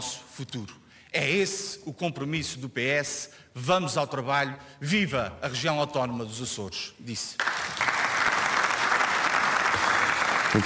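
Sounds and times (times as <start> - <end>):
speech: 0.0 - 7.8
applause in the Azores regional parliament: 7.4 - 10.6.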